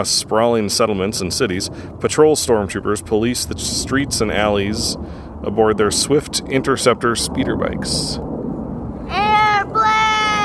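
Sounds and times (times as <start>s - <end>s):
speech: 0.0s - 8.3s
airplane flying by overhead: 0.0s - 10.4s.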